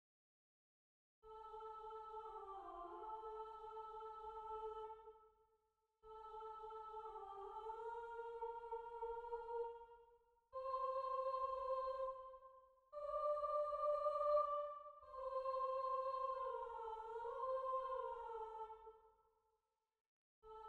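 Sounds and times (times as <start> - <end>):
soprano singing: 1.3 - 5.0, 6.1 - 9.8, 10.6 - 12.4, 13.0 - 18.8, 20.5 - 20.6.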